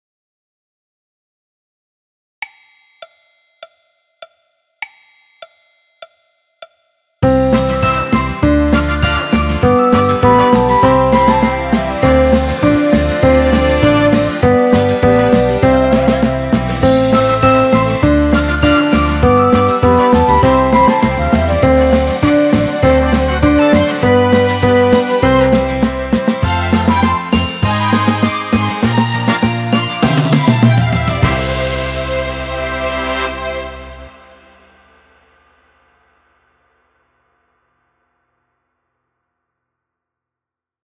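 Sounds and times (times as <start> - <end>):
piano: 7.2 - 34.9
orchestra playing: 7.3 - 34.5.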